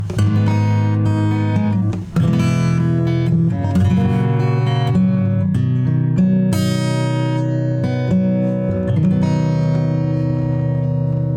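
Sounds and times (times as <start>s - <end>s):
acoustic music: 0.0s - 11.3s.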